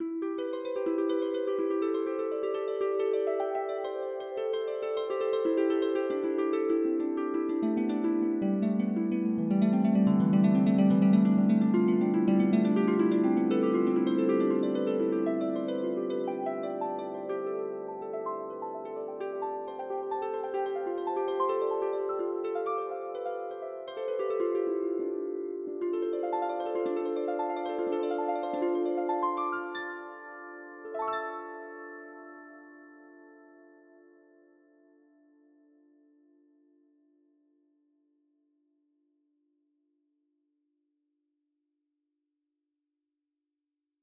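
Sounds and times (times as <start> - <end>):
harp: 0.0 - 36.0.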